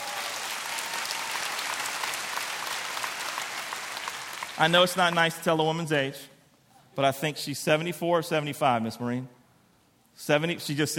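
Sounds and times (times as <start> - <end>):
audience clapping hands: 0.0 - 5.4
speech: 4.6 - 6.3, 7.0 - 9.4, 10.2 - 10.9.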